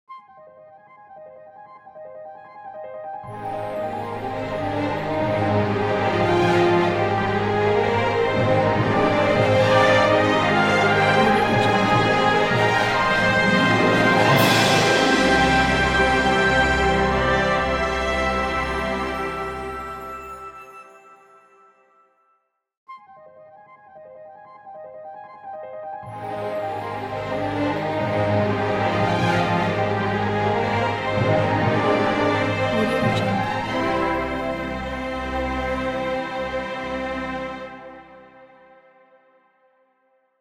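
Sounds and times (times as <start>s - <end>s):
modern cinema logo music: 3.3s - 21.8s, 26.1s - 38.1s.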